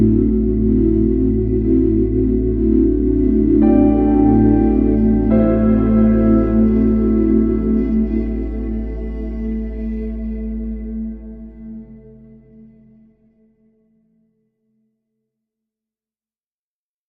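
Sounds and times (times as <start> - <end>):
drones: 0.0 - 12.6
piano: 0.0 - 12.6.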